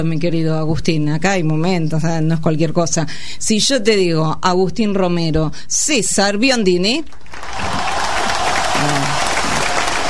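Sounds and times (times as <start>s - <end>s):
speech: 0.0s - 7.6s, 8.8s - 9.1s
audience applause, ovation: 7.2s - 10.0s.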